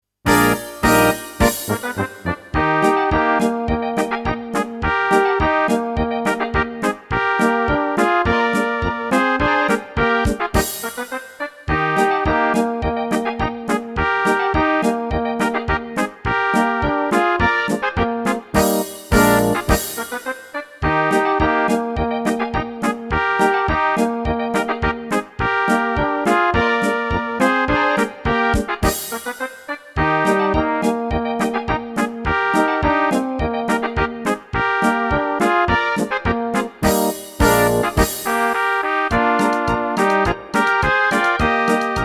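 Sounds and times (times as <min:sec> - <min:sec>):
polka music: 0:00.3 - 0:42.0.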